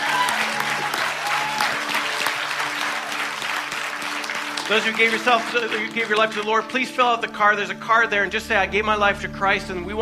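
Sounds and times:
audience clapping: 0.0s - 7.3s
speech: 4.7s - 10.0s.

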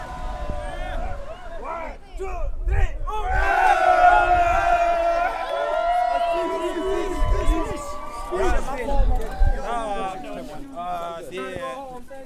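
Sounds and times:
crowd cheering at a restaurant: 0.0s - 2.4s, 3.1s - 11.1s
overlapping talk and babble: 0.0s - 12.2s.

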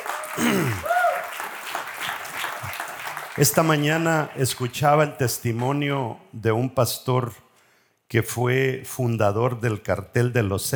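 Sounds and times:
audience applause: 0.0s - 4.4s
speech: 3.4s - 7.4s, 8.1s - 10.7s.

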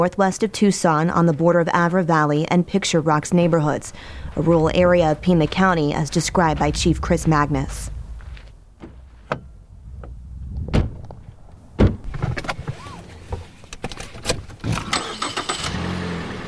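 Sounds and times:
speech: 0.0s - 8.0s
car engine on a rural road northwest of Tucson in Pima County: 2.8s - 16.4s
thumps, clicks and knocks: 3.9s - 13.5s.

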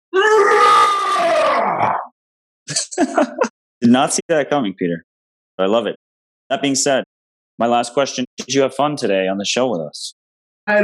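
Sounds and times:
man imitating a lion's roar: 0.2s - 2.1s
laughter: 2.7s - 3.5s
speech: 2.7s - 7.0s, 7.6s - 10.8s.

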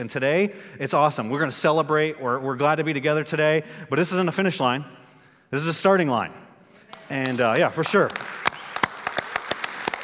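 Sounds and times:
speech: 0.0s - 6.5s, 7.1s - 8.4s
audience clapping: 6.9s - 10.0s.

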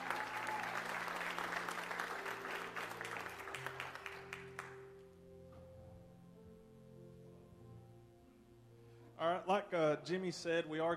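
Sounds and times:
audience applause: 0.0s - 4.8s
speech: 9.2s - 10.9s.

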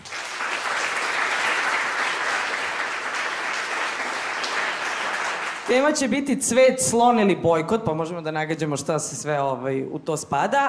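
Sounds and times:
audience applause greeting the team of Peščanik: 0.0s - 5.8s
speech: 5.7s - 10.6s.

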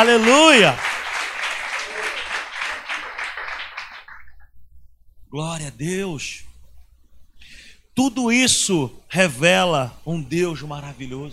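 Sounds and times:
speech: 0.0s - 0.9s, 5.3s - 6.5s, 8.0s - 11.3s
audience applause: 0.0s - 4.3s.

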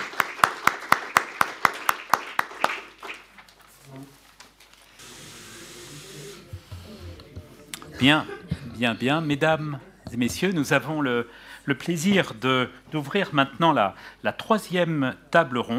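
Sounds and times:
audience applause: 0.0s - 3.6s
speech: 8.0s - 15.7s.

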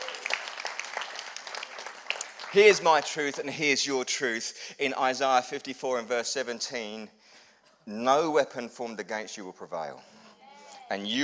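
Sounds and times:
audience applause: 0.0s - 3.5s
speech: 2.5s - 7.2s, 7.9s - 10.2s, 10.9s - 11.2s.

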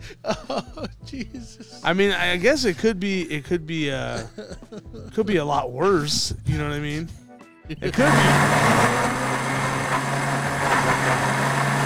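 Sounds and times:
laughter: 0.0s - 9.0s
speech: 0.1s - 9.2s
blender running: 7.9s - 11.8s.

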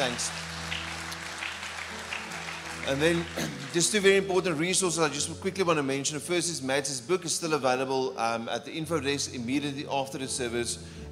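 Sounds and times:
speech: 0.0s - 0.5s, 2.8s - 11.0s
audience applause: 0.0s - 5.3s.

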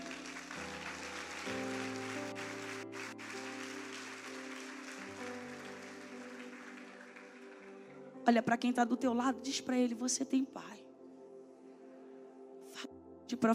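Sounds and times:
audience applauding: 0.0s - 8.1s
speech: 8.3s - 10.8s, 13.4s - 13.5s.

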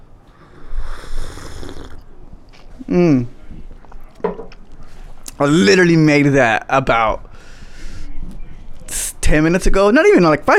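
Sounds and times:
quiet breathing: 0.0s - 3.8s, 4.7s - 5.3s, 7.2s - 9.2s
person slurping hot coffee: 0.4s - 2.1s
speech: 2.9s - 3.4s, 5.4s - 7.3s, 9.3s - 10.5s.

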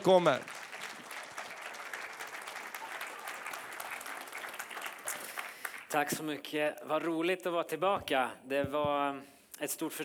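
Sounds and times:
speech: 0.0s - 0.6s, 5.9s - 10.0s
crowd applause: 0.0s - 6.0s.

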